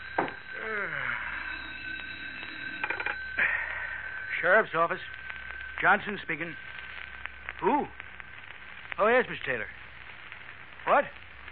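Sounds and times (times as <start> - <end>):
telephone ringing: 0.0 - 7.1
person yawning: 0.5 - 1.8, 3.4 - 4.0, 7.6 - 8.0
speech: 4.4 - 5.2, 5.8 - 6.7, 7.6 - 8.0, 9.0 - 9.8, 10.8 - 11.2.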